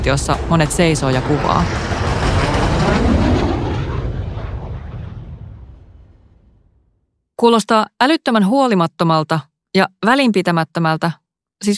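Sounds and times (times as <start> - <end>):
speech: 0.0 - 1.9, 7.4 - 11.7
military jet aircraft flying low past grandstand: 0.0 - 6.6.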